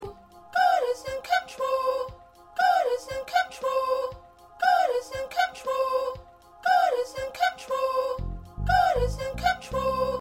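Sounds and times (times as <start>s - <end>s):
first soprano singing: 0.0s - 10.1s.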